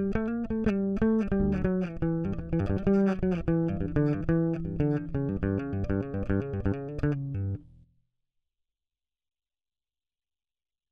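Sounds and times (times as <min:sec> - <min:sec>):
bass phrases: 0:00.0 - 0:07.8.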